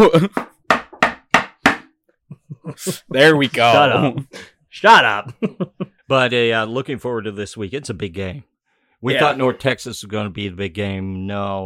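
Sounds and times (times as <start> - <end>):
speech: 0.0 - 0.5, 2.8 - 11.6
knocking on wood: 0.3 - 1.9
laughter: 2.3 - 4.5, 5.1 - 6.1.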